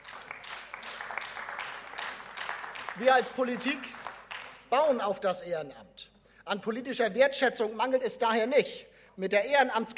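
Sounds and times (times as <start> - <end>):
applause in a parliament chamber: 0.0 - 5.0
speech: 3.0 - 4.0, 4.7 - 9.9.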